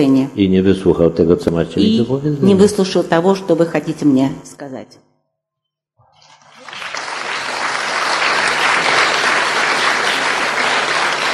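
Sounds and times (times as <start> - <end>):
speech: 0.0 - 5.0
audience applause: 6.1 - 11.3.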